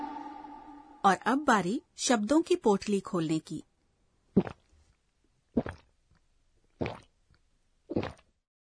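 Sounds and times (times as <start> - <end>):
speech: 1.1 - 3.7, 4.4 - 4.6
person gulping a drink: 4.3 - 4.9, 5.5 - 6.0, 6.7 - 8.4.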